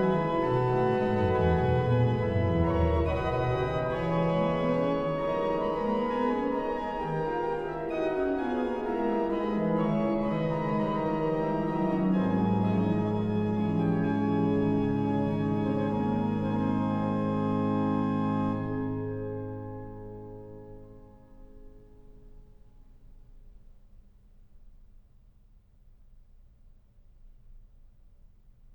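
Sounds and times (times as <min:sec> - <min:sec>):
organ playing a hymn: 0:00.0 - 0:21.3.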